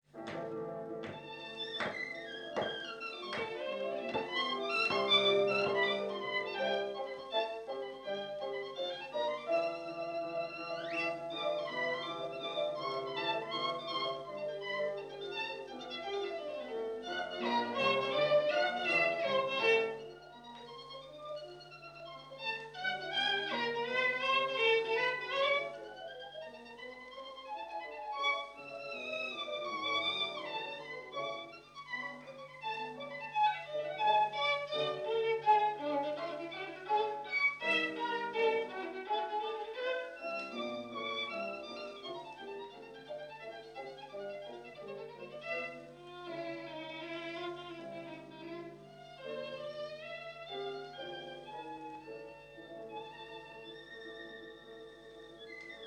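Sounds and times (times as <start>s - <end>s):
violin playing a tarantella: 0.2s - 55.8s.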